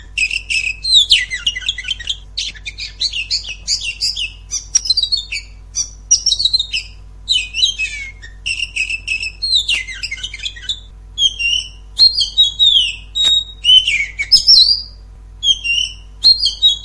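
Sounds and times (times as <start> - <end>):
Oriental magpie-robin scratchy song: 0.0 - 16.8.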